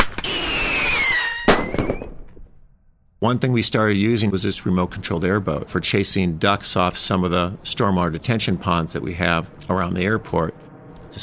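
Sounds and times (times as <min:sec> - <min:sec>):
pyrotechnics fired to scare birds: 0:00.0 - 0:02.5
speech: 0:03.2 - 0:11.2.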